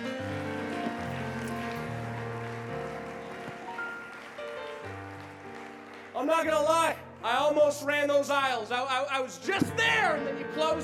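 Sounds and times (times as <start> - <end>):
audience clapping for choir: 0.0 - 8.0
speech: 6.2 - 10.8.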